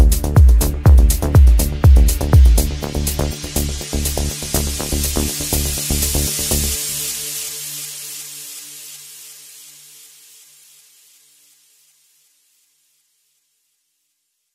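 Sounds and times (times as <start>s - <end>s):
ethno music mix: 0.0s - 9.6s.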